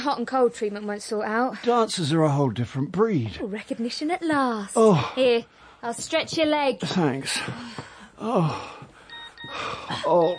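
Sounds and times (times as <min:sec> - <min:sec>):
speech: 0:00.0 - 0:08.8, 0:09.4 - 0:10.3
person groaning and gasping: 0:04.8 - 0:05.2, 0:08.2 - 0:08.9
mobile phone ringing: 0:09.1 - 0:10.3.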